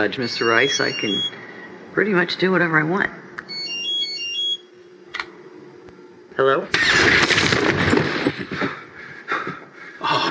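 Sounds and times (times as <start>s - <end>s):
cell phone ringing with electronic melody: 0.0s - 1.4s, 3.5s - 4.7s
speech: 0.0s - 3.2s, 6.4s - 7.4s
low steady hum: 0.0s - 10.2s.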